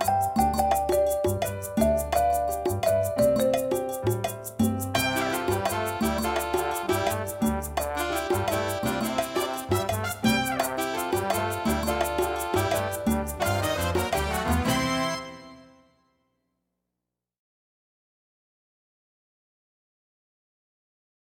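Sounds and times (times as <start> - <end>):
instrumental music: 0.0 - 16.1.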